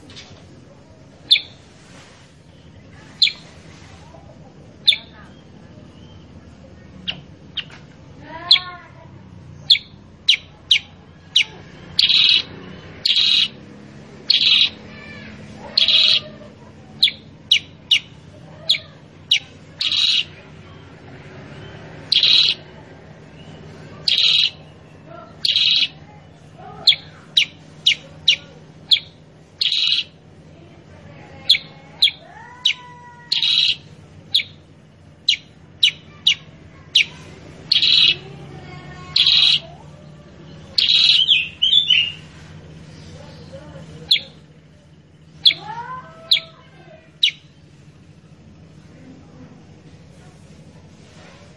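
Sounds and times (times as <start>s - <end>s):
steady low background hum: 0.0s - 51.5s
Sooty-headed bulbul calls: 1.2s - 1.6s, 2.4s - 3.5s, 4.8s - 6.4s, 9.6s - 13.6s, 14.2s - 20.9s, 21.6s - 22.7s, 23.3s - 30.3s, 31.4s - 38.4s, 39.0s - 39.8s, 40.5s - 42.3s, 43.3s - 44.5s, 45.2s - 47.8s.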